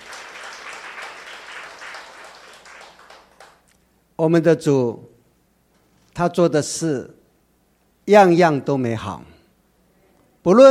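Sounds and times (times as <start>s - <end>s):
audience applause: 0.0s - 3.6s
speech: 4.2s - 5.1s, 6.2s - 7.2s, 8.0s - 9.4s, 10.4s - 10.6s.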